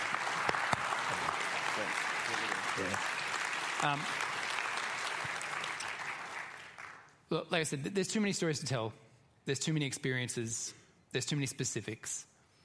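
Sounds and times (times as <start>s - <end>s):
crowd applause: 0.0s - 7.0s
speech: 2.3s - 3.1s, 3.8s - 4.3s, 7.5s - 12.3s.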